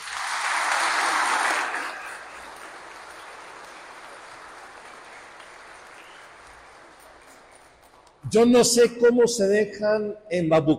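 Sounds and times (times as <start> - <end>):
audience applause: 0.0 - 8.1
speech: 8.3 - 10.7.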